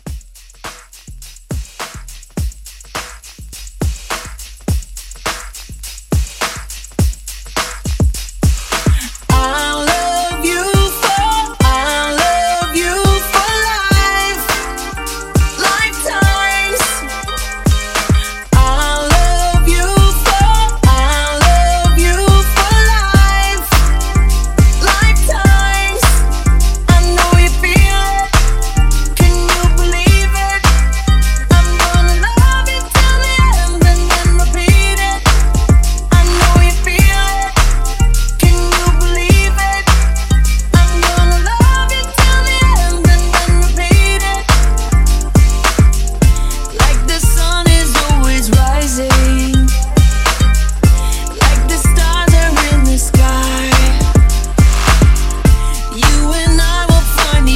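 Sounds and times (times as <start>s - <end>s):
drums in a mashup: 0.0s - 57.5s.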